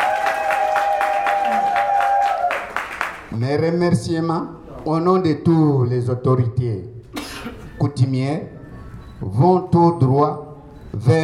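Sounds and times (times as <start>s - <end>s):
audience applause: 0.0s - 3.3s
speech: 3.4s - 7.0s, 7.8s - 8.6s, 9.2s - 11.2s.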